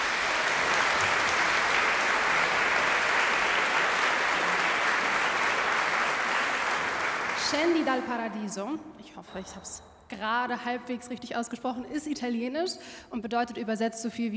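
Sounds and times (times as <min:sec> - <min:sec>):
audience applause for a choir: 0:00.0 - 0:08.1
speech: 0:07.5 - 0:14.3.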